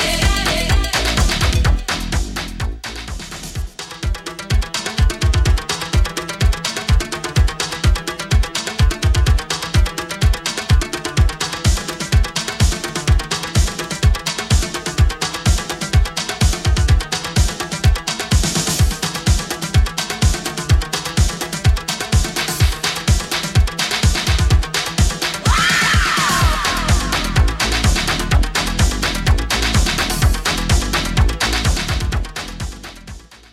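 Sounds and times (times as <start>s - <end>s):
80s style drum beat at 126 bpm: 0.0s - 33.5s.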